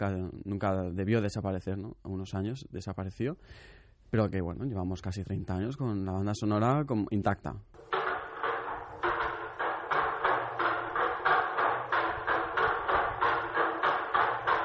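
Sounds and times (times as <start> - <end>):
speech: 0.0 - 8.0
wooden bell wooden percussion instrument clacking: 7.8 - 14.6.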